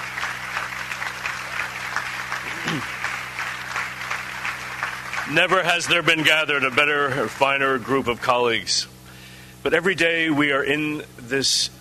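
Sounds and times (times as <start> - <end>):
audience cheering and applause: 0.0 - 8.0
speech: 2.7 - 3.0, 5.3 - 8.9, 9.6 - 11.7.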